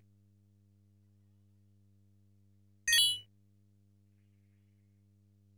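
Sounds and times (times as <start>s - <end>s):
item extend sound effect: 2.9s - 3.2s.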